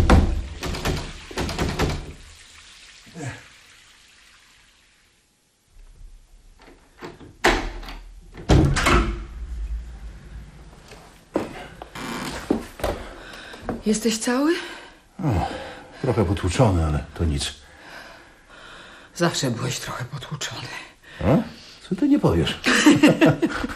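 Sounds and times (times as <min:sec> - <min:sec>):
door being forced with heavy thuds and rattling bangs: 0:00.0 - 0:02.2, 0:07.0 - 0:09.6
speech: 0:13.9 - 0:17.6, 0:19.2 - 0:23.7.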